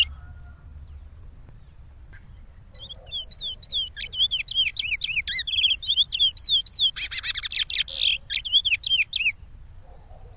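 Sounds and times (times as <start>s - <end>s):
chestnut-bellied seed finch singing: 2.2s - 9.4s.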